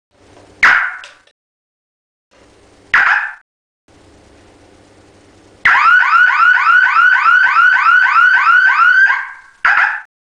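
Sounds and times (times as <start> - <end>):
siren: 5.6 - 10.0.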